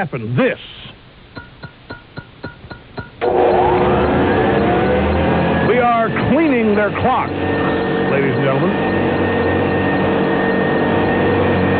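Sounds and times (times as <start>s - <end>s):
speech: 0.0s - 0.9s, 6.4s - 9.0s
vacuum cleaner whirring: 3.2s - 11.7s.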